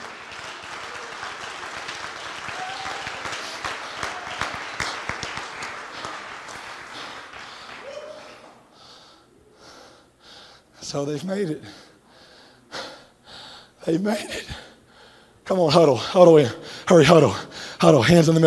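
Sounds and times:
audience applause: 0.0s - 8.7s
speech: 10.9s - 11.8s, 13.8s - 14.6s, 15.5s - 18.4s.

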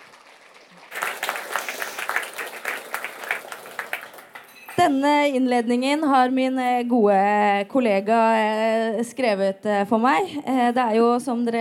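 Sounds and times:
warm audience applause: 0.0s - 4.9s
speech: 4.8s - 11.5s.

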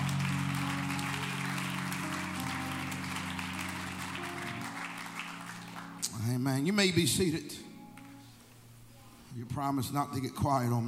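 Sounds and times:
audience clapping: 0.0s - 6.3s
speech: 6.4s - 7.7s, 9.4s - 10.8s.

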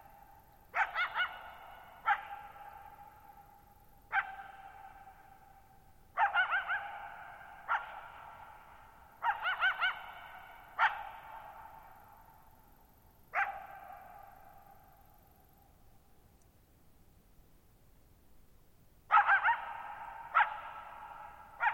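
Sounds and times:
coyote barking: 0.0s - 12.1s, 13.3s - 14.6s, 19.1s - 21.7s.

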